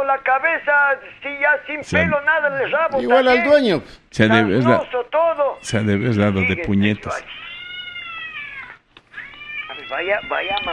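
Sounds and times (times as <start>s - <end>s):
speech: 0.0s - 7.4s, 9.9s - 10.7s
cat meowing: 7.1s - 10.7s.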